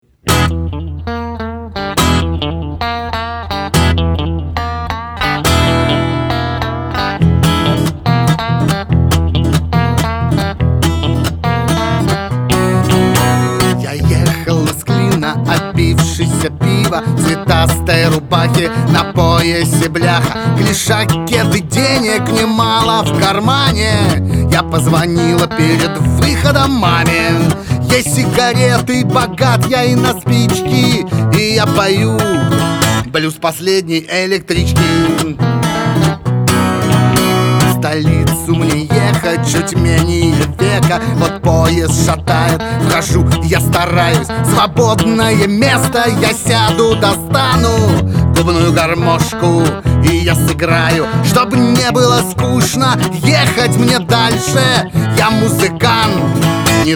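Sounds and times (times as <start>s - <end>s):
blues music: 0.1s - 33.3s, 34.4s - 56.9s.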